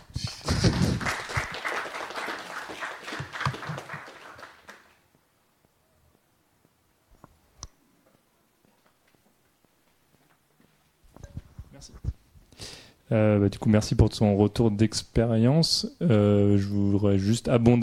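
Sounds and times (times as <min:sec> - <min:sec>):
audience clapping: 0:00.0 - 0:05.0
speech: 0:13.1 - 0:17.8.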